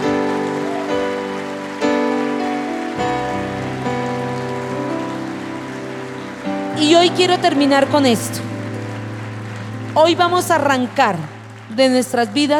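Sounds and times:
applause: 0.0s - 12.5s
sustained keyboard chords: 0.0s - 12.5s
speech: 6.8s - 8.6s, 10.0s - 12.5s.

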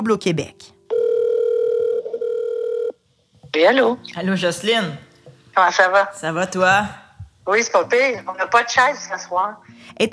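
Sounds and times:
speech: 0.0s - 0.7s, 3.6s - 10.1s
telephone ringback tone on an outgoing call: 0.9s - 3.0s.

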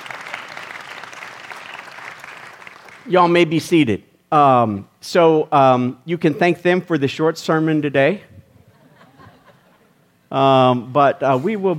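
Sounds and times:
audience clapping for youth: 0.0s - 3.1s
speech: 3.0s - 8.4s, 10.3s - 11.7s
laughter: 8.5s - 10.1s.

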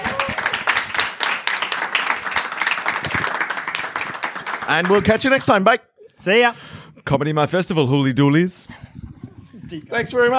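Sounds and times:
live audience clapping at a comedy festival show: 0.0s - 5.6s
speech: 4.7s - 8.9s, 9.7s - 10.3s.

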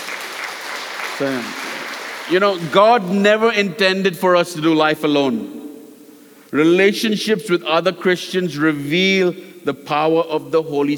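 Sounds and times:
audience clapping: 0.0s - 3.1s
speech: 1.2s - 1.7s, 2.3s - 5.6s, 6.5s - 10.9s.

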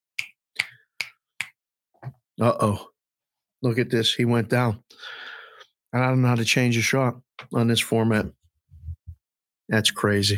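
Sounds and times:
finger snapping: 0.2s - 1.6s
speech: 2.4s - 2.9s, 3.6s - 5.2s, 5.9s - 8.4s, 9.7s - 10.3s.

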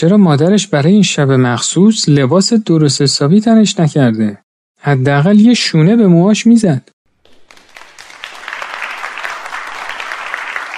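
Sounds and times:
speech: 0.0s - 7.0s
audience applause in a concert hall: 7.2s - 10.7s.

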